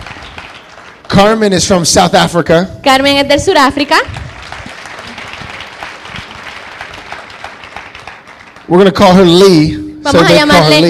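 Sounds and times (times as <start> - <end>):
audience applause: 0.0 - 1.8, 4.1 - 9.4
speech: 1.2 - 4.2, 8.7 - 10.8.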